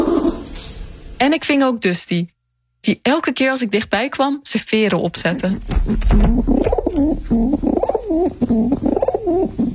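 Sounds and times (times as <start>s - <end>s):
pigeon cooing: 0.0s - 0.6s, 5.3s - 9.7s
speech: 1.2s - 9.7s.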